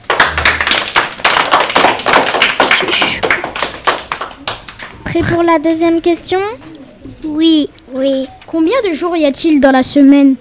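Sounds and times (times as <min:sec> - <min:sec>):
audience applause: 0:00.0 - 0:05.0
speech: 0:05.2 - 0:06.6, 0:07.2 - 0:10.3.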